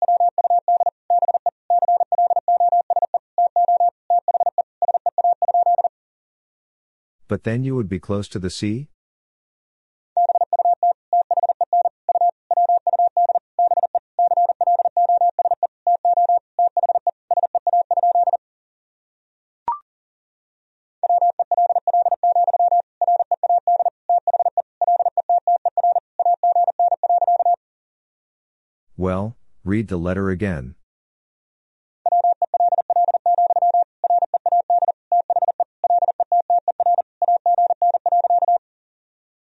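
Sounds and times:
Morse code tones at 40 wpm: 0.0 - 5.9, 10.2 - 18.4, 21.0 - 27.6, 32.1 - 38.6
speech: 7.3 - 8.9, 29.1 - 30.8.

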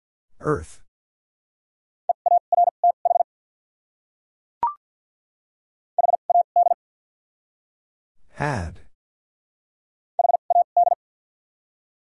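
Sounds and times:
speech: 0.4 - 0.8, 8.4 - 8.8
Morse code beeps at 50 wpm: 2.2 - 3.2, 6.0 - 6.8, 10.2 - 11.0.

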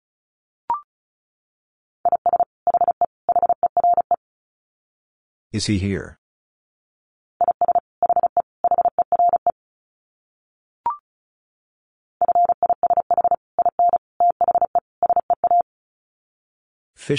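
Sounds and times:
fast Morse code beeps at 35 words per minute: 2.1 - 4.2, 7.4 - 9.5, 12.2 - 15.6
speech: 5.5 - 6.2.

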